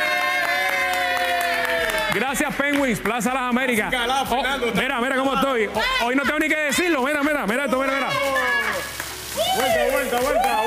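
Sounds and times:
audience clapping: 0.0 - 3.9, 7.6 - 10.6
speech: 2.1 - 8.6, 9.6 - 10.6.

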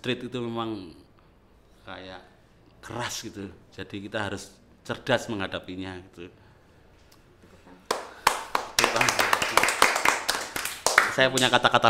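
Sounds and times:
speech: 0.0 - 1.0, 1.8 - 6.4, 11.2 - 11.8
audience clapping: 7.9 - 11.6.

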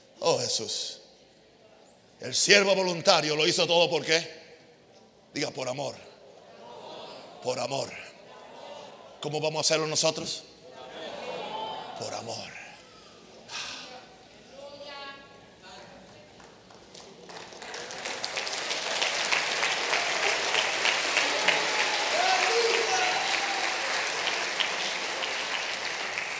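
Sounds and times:
speech: 0.4 - 1.0, 2.2 - 4.4, 5.3 - 6.1, 7.4 - 8.0, 9.2 - 10.5, 12.0 - 12.6
applause: 16.0 - 26.3.

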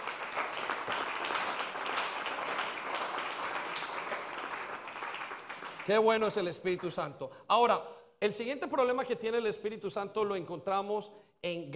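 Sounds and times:
audience applause: 0.0 - 6.0
speech: 5.9 - 11.7.

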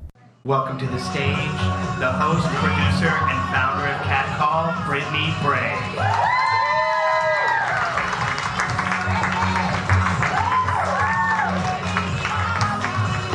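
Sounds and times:
speech: 0.4 - 6.5
audience clapping and cheering: 5.6 - 13.3.

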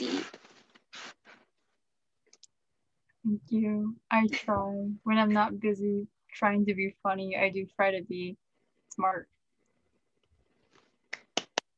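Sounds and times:
speech: 3.2 - 8.4, 9.0 - 9.4
hand claps: 11.1 - 11.7.

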